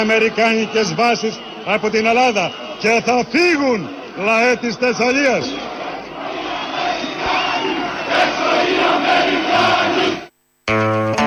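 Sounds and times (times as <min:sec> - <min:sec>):
speech: 0:00.0 - 0:05.8
crowd chanting in Plateia Eleftherias in Larissa: 0:00.0 - 0:10.3.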